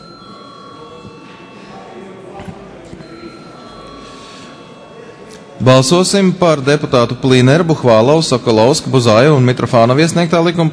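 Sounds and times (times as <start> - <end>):
parliament chair's bell calling a vote: 0.0 - 2.4, 3.0 - 7.3
murmur of voices: 0.0 - 10.7
speech: 5.6 - 10.7.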